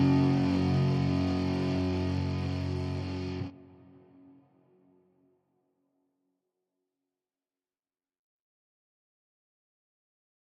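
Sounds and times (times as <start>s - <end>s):
chase lead riffs: 0.0s - 3.5s.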